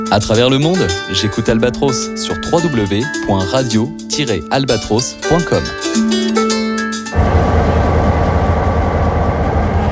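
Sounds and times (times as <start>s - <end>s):
speech: 0.1s - 6.3s
moving train in Sri Lanka: 7.1s - 9.9s.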